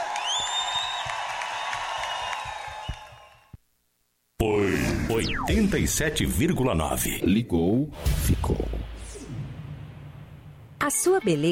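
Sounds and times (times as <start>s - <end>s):
whistles and whoops: 0.0s - 3.5s
crowd clapping: 0.0s - 3.6s
speech: 4.4s - 8.8s, 10.9s - 11.4s.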